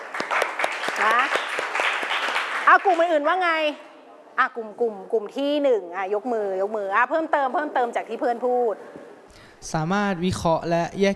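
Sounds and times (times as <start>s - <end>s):
classmates clapping for a student in a classroom: 0.0s - 3.2s
speech: 2.7s - 11.1s.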